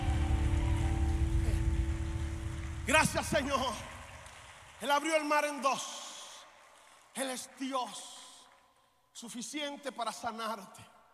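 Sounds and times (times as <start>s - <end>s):
audience applauding loudly: 0.0s - 8.7s
speech: 2.9s - 3.9s, 4.8s - 6.0s, 7.2s - 8.2s, 9.2s - 10.9s.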